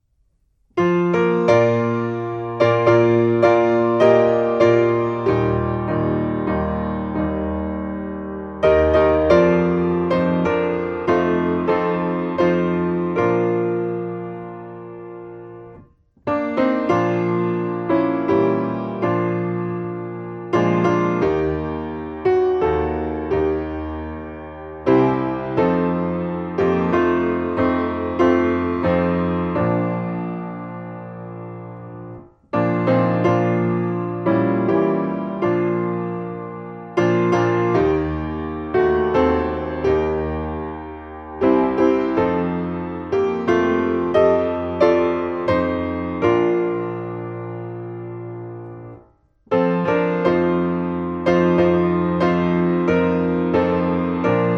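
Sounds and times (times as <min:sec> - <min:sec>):
piano: 0:00.0 - 0:54.5.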